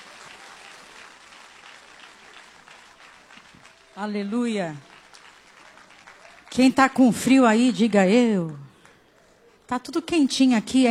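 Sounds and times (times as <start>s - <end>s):
crowd applauding: 0.0s - 7.2s
speech: 4.0s - 4.9s, 6.6s - 8.6s, 9.7s - 10.8s.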